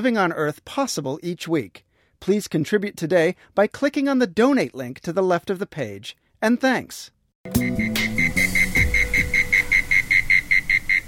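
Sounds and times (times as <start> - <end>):
speech: 0.0 - 8.1
insects on a warm spring evening: 7.6 - 11.0.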